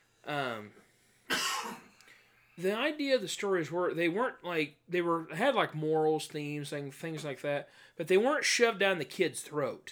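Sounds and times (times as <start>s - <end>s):
person coughing from choking on nothing: 1.3s - 1.9s
speech: 2.6s - 9.9s.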